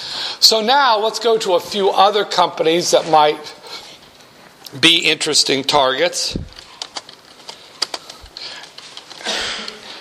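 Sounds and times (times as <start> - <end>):
speech: 0.5 - 3.6, 4.7 - 6.6
computer keyboard keys tapping as a company name is typed: 6.4 - 9.9.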